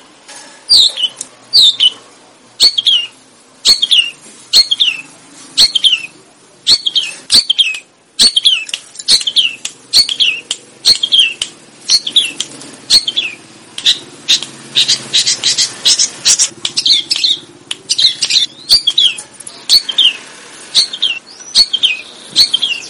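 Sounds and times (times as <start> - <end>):
sooty-headed bulbul chattering: 2.6 - 22.8.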